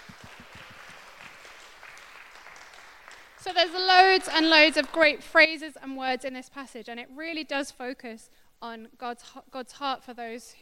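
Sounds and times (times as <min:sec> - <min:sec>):
small group applause: 0:00.0 - 0:05.1
speech: 0:03.4 - 0:10.5.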